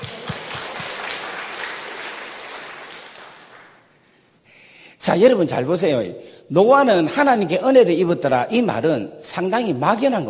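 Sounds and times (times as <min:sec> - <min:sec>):
audience applause: 0:00.0 - 0:03.9
speech: 0:05.0 - 0:10.2.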